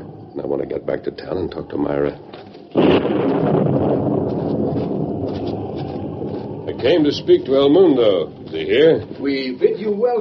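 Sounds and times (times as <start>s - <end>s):
speech: 0.4s - 3.4s, 6.8s - 10.2s
thunder in an electric storm: 2.7s - 7.8s.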